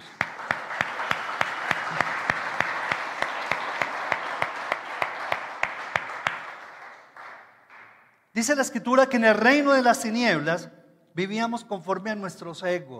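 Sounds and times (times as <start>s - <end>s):
audience applause: 0.0s - 8.0s
speech: 8.4s - 12.9s.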